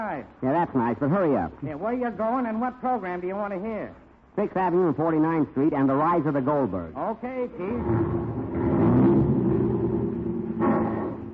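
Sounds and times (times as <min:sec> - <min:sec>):
speech: 0:00.1 - 0:08.4
taxi cab engine running as radio drama sound effect: 0:07.8 - 0:11.3.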